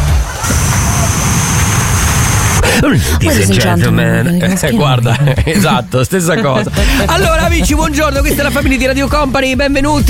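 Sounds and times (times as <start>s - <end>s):
laughter: 0.0s - 1.6s, 2.6s - 9.1s
white noise like airplane before takeoff: 0.2s - 2.7s
speech: 2.8s - 10.0s.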